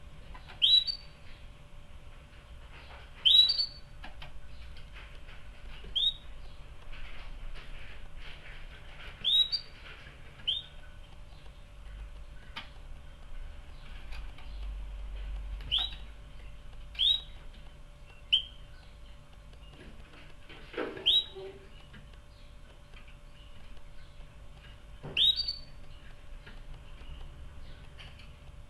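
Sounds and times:
canary chirping: 0.4 - 1.4, 2.8 - 4.8, 5.7 - 6.6, 9.1 - 14.8, 15.6 - 28.3.

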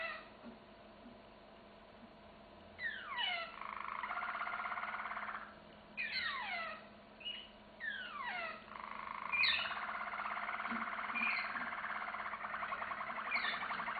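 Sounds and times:
canary singing: 2.8 - 13.9.

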